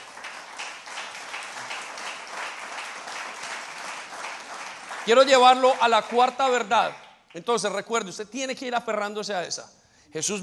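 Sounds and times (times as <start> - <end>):
crowd applause: 0.0 - 6.7
speech: 5.0 - 10.4.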